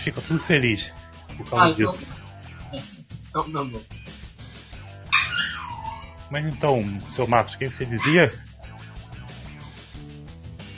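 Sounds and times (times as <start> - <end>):
speech: 0.0 - 4.0, 6.3 - 8.5
dog barking and yipping excitedly: 5.1 - 6.3, 7.9 - 8.4.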